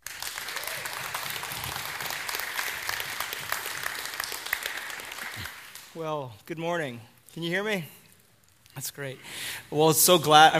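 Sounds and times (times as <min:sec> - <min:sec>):
church congregation clapping to welcome a guest preacher: 0:00.0 - 0:06.5
speech: 0:06.0 - 0:08.0, 0:08.8 - 0:10.5.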